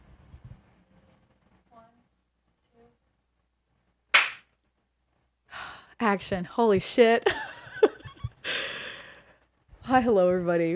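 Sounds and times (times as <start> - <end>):
single sharp hand clap to start recording: 4.1 - 4.5
speech: 6.0 - 7.5, 9.9 - 10.7.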